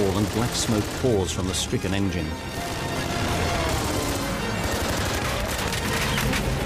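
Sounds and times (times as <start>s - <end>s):
fighter plane machine-gun burst hitting a big plane's fuselage: 0.0s - 1.3s, 2.6s - 6.5s
speech: 0.2s - 2.8s.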